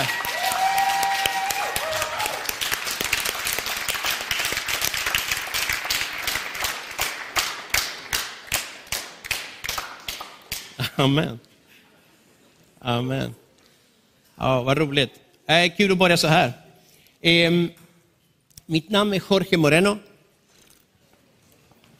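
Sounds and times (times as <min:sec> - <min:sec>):
audience applause: 0:00.0 - 0:10.4
speech: 0:11.0 - 0:11.5, 0:12.8 - 0:13.4, 0:14.4 - 0:16.6, 0:17.2 - 0:17.8, 0:18.7 - 0:20.1.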